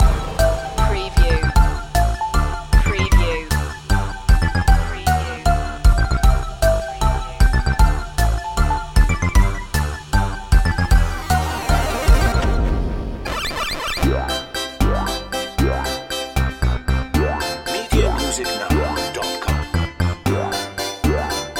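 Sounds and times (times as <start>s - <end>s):
retro video game circus music loop: 0.0s - 21.5s.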